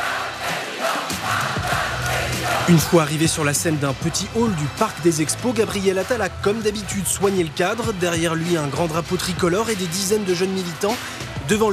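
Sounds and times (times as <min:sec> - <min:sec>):
scattered shouts: 0:00.0 - 0:03.1
crowd roaring and cheering at political rally: 0:00.0 - 0:11.7
speech: 0:02.7 - 0:11.7.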